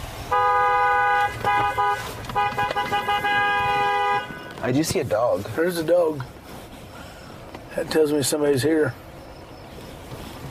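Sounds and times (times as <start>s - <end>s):
low engine rumble: 0.0s - 10.4s
vehicle horn honking: 0.3s - 4.8s
speech: 4.6s - 6.4s, 7.8s - 9.0s.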